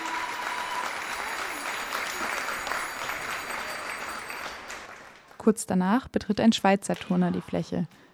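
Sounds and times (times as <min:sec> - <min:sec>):
audience applauding: 0:00.0 - 0:05.4
bicycle bells of Dutch fans ringing: 0:01.0 - 0:04.7
speech: 0:05.4 - 0:08.1.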